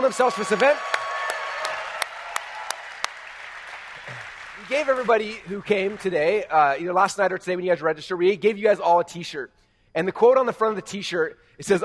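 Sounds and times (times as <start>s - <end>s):
speech: 0.0s - 1.0s, 4.7s - 11.8s
audience applause: 0.0s - 6.1s.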